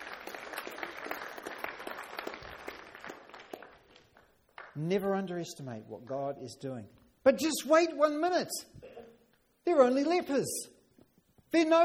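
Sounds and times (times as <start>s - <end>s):
audience applause: 0.0s - 4.8s
speech: 4.8s - 8.8s, 9.7s - 10.7s, 11.5s - 11.8s.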